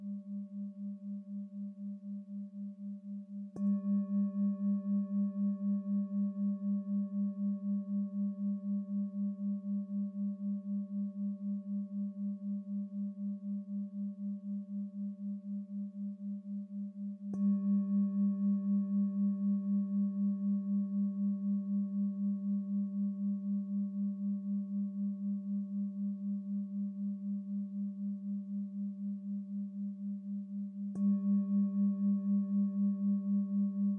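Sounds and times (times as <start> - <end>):
background singing bowls: 0.0 - 33.9.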